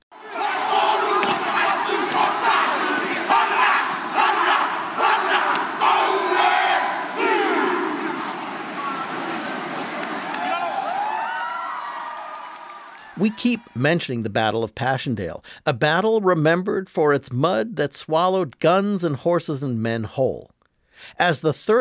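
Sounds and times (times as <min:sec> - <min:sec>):
group chanting a Maori haka war cry: 0:00.1 - 0:11.1
speech: 0:13.2 - 0:21.7.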